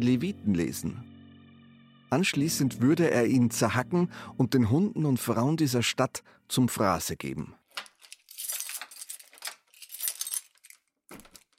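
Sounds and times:
speech: 0.0 - 1.1, 2.1 - 7.6
keys jingling: 7.7 - 11.5.

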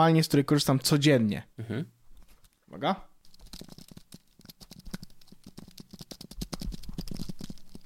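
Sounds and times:
speech: 0.0 - 2.0, 2.7 - 3.8
typing on an Apple Magic Keyboard: 3.2 - 7.8.

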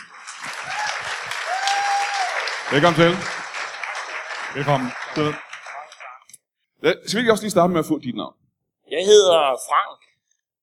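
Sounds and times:
studio audience applause at a live comedy show: 0.0 - 6.2
speech: 2.7 - 3.4, 4.5 - 5.4, 6.8 - 10.0.

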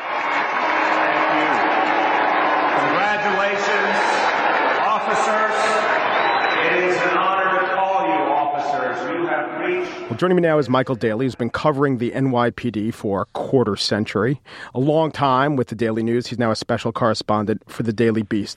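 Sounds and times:
crowd applause: 0.0 - 9.2
speech: 10.1 - 18.5.

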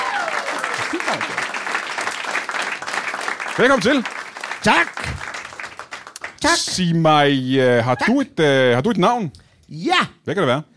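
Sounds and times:
audience applause on a Danish stage show: 0.0 - 7.0
speech: 3.6 - 5.1, 6.4 - 10.7.

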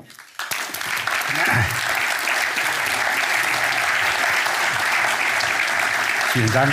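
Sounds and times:
audience applause: 0.0 - 6.7.

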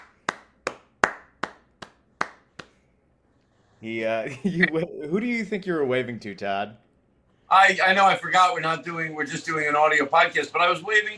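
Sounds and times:
audience applause of sharp hand claps: 0.0 - 2.8
speech: 3.8 - 6.8, 7.5 - 11.1.

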